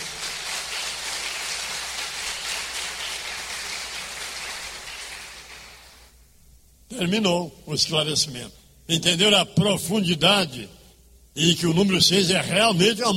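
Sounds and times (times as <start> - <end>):
applause: 0.0 - 6.1
speech: 7.0 - 10.8, 11.4 - 13.1.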